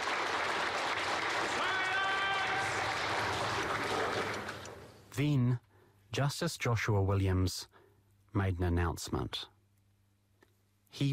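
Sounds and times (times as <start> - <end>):
courtroom crowd applause: 0.0 - 5.0
speech: 5.2 - 7.8, 8.4 - 9.5, 10.9 - 11.1.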